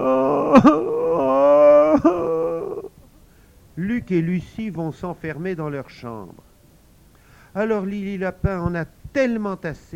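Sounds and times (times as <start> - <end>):
woman wailing and sobbing in acted imitation of weeping: 0.0 - 2.9
speech: 0.5 - 0.8, 4.1 - 6.5, 7.6 - 9.9.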